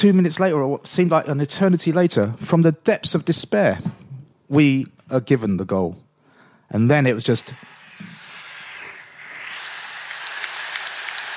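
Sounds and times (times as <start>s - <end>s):
speech: 0.0s - 6.0s, 6.7s - 8.1s
crowd applause: 9.2s - 11.3s.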